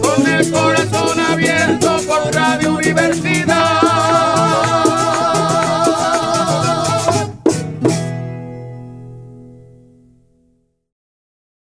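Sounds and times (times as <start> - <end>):
Christmas jingle: 0.0 - 7.4.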